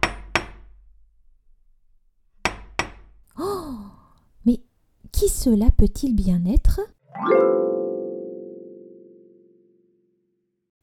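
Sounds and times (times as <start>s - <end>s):
knocking on a door: 2.4s - 3.1s
speech: 5.2s - 7.7s.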